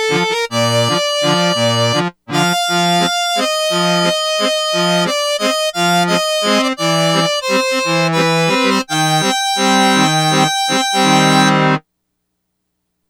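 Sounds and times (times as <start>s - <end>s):
squeezebox factory patch on a Yamaha DX100 synthesizer: 0.0s - 11.8s.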